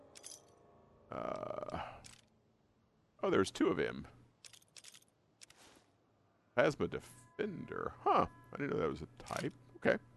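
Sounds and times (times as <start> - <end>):
minigun dropped from the inventory in the video game Fallout: 0.0 - 0.6, 4.4 - 5.7
speech: 1.1 - 1.5, 3.2 - 4.2, 6.6 - 10.1.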